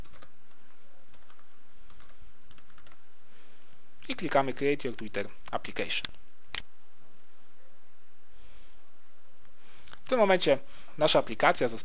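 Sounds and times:
typing on a computer keyboard: 0.0 - 0.3, 1.1 - 3.0
speech: 4.1 - 6.2, 10.1 - 11.8.

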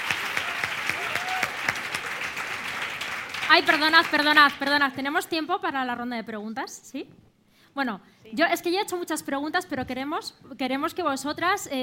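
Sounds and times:
audience applause: 0.0 - 4.6
speech: 3.5 - 11.8.

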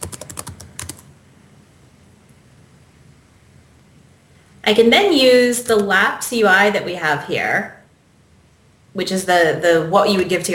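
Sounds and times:
typing a command on a computer keyboard: 0.0 - 1.1
speech: 4.7 - 7.8, 9.0 - 10.5.

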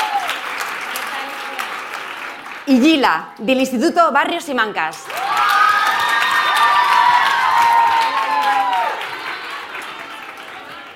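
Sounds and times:
audience applause: 0.0 - 2.8, 5.0 - 10.9
speech: 2.7 - 5.2.

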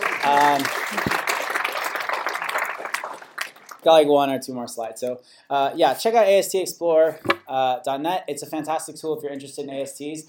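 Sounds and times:
audience applause: 0.0 - 3.8
speech: 0.2 - 1.2, 3.8 - 10.2.

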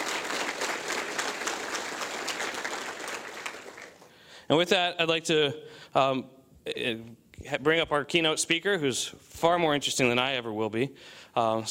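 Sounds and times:
audience applause: 0.0 - 4.1
speech: 4.5 - 11.6.

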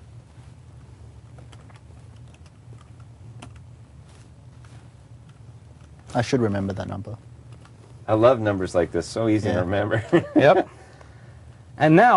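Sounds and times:
computer keyboard keys clicking as a confirmation number is typed: 1.4 - 3.6
speech: 6.2 - 7.3, 8.1 - 10.8, 11.8 - 12.1.

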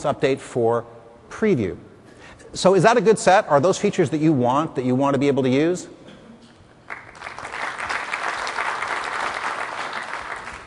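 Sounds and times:
speech: 0.0 - 1.9, 2.5 - 6.0
polite applause from an audience: 6.9 - 10.6.

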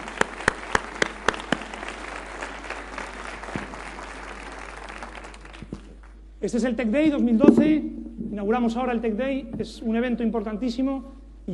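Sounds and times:
audience applause: 0.0 - 6.2
speech: 6.4 - 11.5.

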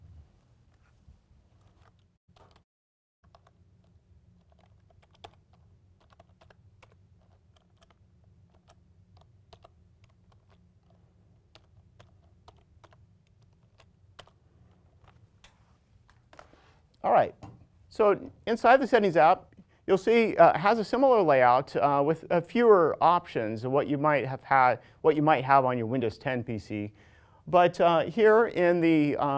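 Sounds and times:
typing an admin password on a computer keyboard: 3.2 - 14.4
speech: 17.0 - 17.4, 18.0 - 29.3.

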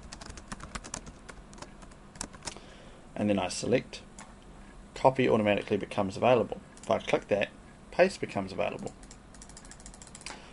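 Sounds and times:
typing on a computer keyboard: 0.0 - 2.6, 8.8 - 10.3
speech: 3.2 - 4.1, 5.0 - 9.0.

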